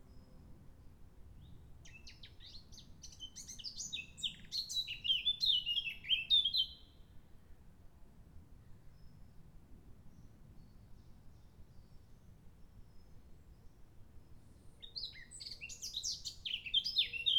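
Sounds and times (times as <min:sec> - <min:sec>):
blackcap singing: 0:01.9 - 0:06.8, 0:14.8 - 0:17.3.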